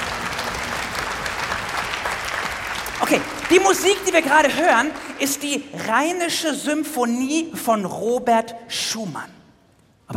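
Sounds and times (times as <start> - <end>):
audience applause: 0.0 - 6.0
speech: 3.0 - 9.4.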